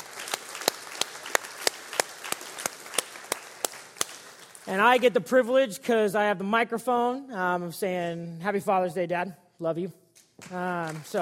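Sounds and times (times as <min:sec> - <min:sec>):
applause: 0:00.0 - 0:05.1, 0:10.4 - 0:11.2
speech: 0:04.7 - 0:11.2.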